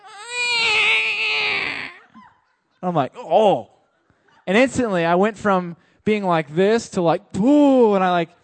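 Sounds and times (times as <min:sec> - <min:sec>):
person imitating a baby doll crying: 0:00.0 - 0:02.2
speech: 0:02.8 - 0:03.7, 0:04.5 - 0:08.4.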